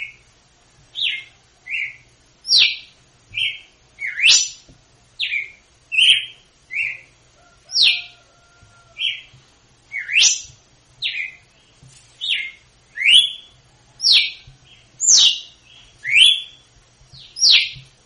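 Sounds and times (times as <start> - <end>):
female red-cowled cardinal singing in Northeast Brazil style: 1.1 - 4.6, 5.2 - 7.1, 9.9 - 10.5, 12.3 - 13.5, 15.0 - 16.6, 17.3 - 17.7.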